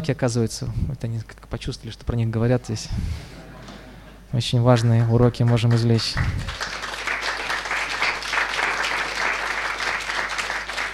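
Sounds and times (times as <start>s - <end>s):
speech: 0.0s - 3.3s, 4.3s - 6.7s
audience applause closing a spiritual talk: 5.0s - 10.9s.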